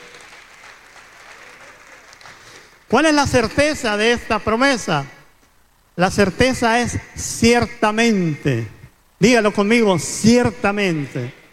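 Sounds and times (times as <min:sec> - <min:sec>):
audience applause: 0:00.0 - 0:02.9
speech: 0:02.9 - 0:05.2, 0:06.0 - 0:11.4.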